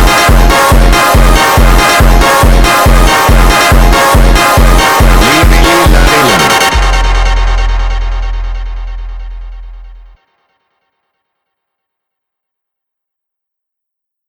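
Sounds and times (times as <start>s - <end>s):
funk music: 0.0s - 10.1s.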